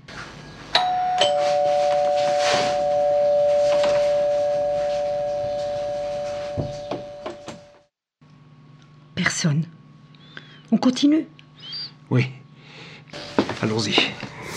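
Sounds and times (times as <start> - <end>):
two-note doorbell chime at a front door: 0.8 - 7.8
speech: 9.4 - 9.8, 10.8 - 11.4, 12.1 - 12.4, 13.6 - 14.3.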